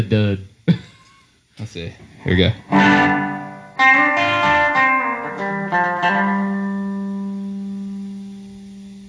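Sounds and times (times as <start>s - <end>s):
speech: 0.0s - 0.5s, 1.6s - 4.4s
multi-effects reverb pedal demo: 2.6s - 9.0s.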